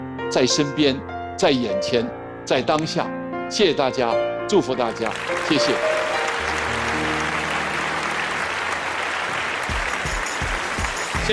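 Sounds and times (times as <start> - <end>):
speech: 0.3 - 6.0
audience applause: 5.0 - 11.3.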